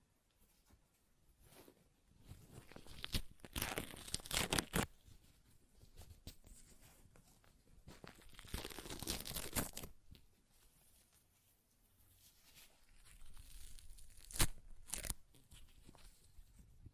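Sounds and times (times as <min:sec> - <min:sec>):
quieter paper crinkling and rustling: 0:01.5 - 0:11.4, 0:12.0 - 0:16.5
paper ripping and tearing: 0:02.7 - 0:04.9, 0:08.2 - 0:09.9, 0:13.2 - 0:15.2.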